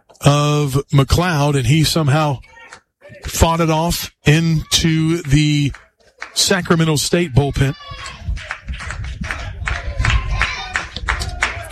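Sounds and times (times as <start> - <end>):
speech: 0.2 - 2.5, 3.2 - 8.9
low constant rumble of stadium noise: 2.4 - 11.7
crowd clapping along rhythmically: 4.7 - 11.7.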